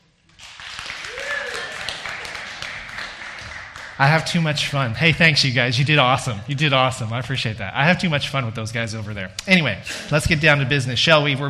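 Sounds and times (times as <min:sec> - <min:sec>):
large audience applauding: 0:00.3 - 0:04.7
cheers and whistles: 0:01.0 - 0:02.0
speech: 0:04.0 - 0:11.4.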